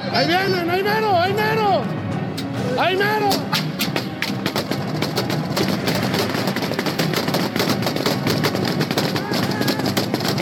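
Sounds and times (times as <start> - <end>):
speech: 0.1 - 2.0, 2.7 - 3.7
gunfire in a shootout in Coahuila: 3.5 - 10.3.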